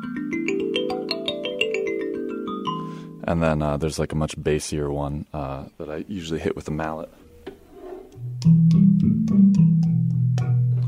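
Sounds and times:
thumb piano playing plucked metallic notes: 0:00.0 - 0:03.2, 0:06.8 - 0:10.8
speech: 0:03.3 - 0:07.2.

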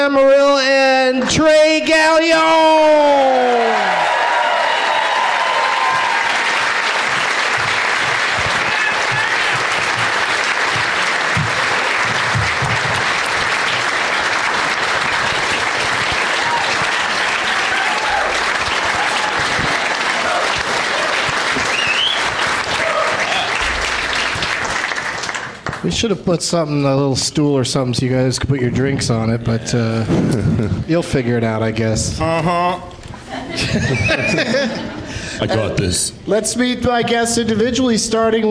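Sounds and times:
speech: 0:00.0 - 0:03.2, 0:25.9 - 0:32.9, 0:33.6 - 0:34.8, 0:35.4 - 0:38.4
audience applause welcoming three guests onto a stage: 0:03.4 - 0:25.9
laughter: 0:30.0 - 0:30.9, 0:32.2 - 0:35.5.

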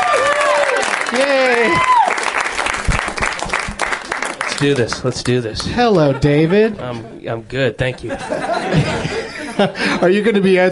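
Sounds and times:
talk show audience applause welcoming a comedian guest: 0:00.0 - 0:05.4
speech: 0:01.2 - 0:01.9, 0:04.6 - 0:10.7
laughter: 0:05.6 - 0:10.1.

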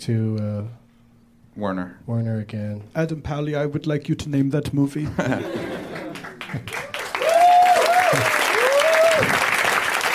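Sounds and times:
speech: 0:00.0 - 0:00.8, 0:01.6 - 0:05.8
laughter: 0:05.0 - 0:06.9
audience clapping excitedly: 0:05.8 - 0:10.1.

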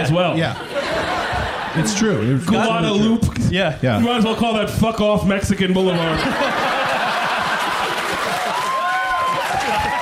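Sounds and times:
speech: 0:00.0 - 0:06.7
laughter: 0:00.3 - 0:02.8, 0:05.8 - 0:10.0
audience cheering: 0:06.2 - 0:10.0.

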